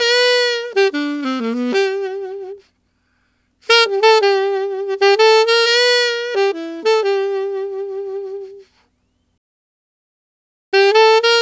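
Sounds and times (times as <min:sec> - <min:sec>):
alto saxophone country waltz in G: 0:00.0 - 0:02.8, 0:03.6 - 0:08.9, 0:10.8 - 0:11.4.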